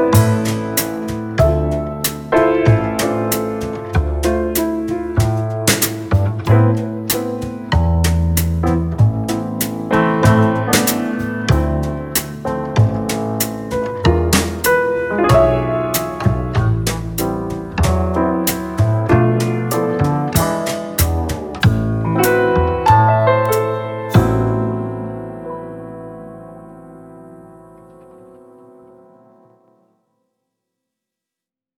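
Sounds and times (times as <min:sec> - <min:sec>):
mid tempo jazz with flutist: 0:00.0 - 0:24.8.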